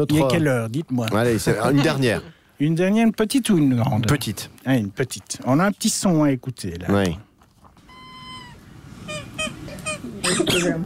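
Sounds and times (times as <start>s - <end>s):
speech: 0.0s - 7.3s, 10.3s - 10.8s
squeaky breathing after swallowing a dog toy: 7.8s - 10.5s.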